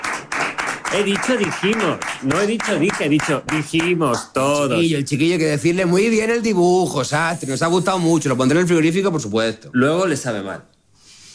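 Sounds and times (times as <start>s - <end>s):
applause: 0.0s - 4.4s
speech: 0.9s - 10.7s.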